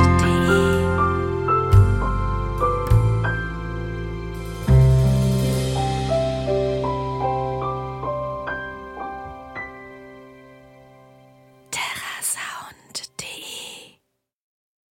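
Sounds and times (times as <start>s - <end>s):
cinematic outro music: 0.0s - 11.3s.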